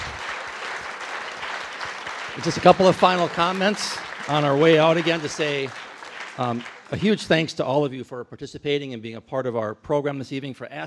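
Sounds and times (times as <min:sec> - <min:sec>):
audience applause: 0:00.0 - 0:07.6
speech: 0:02.4 - 0:05.8, 0:06.4 - 0:10.8.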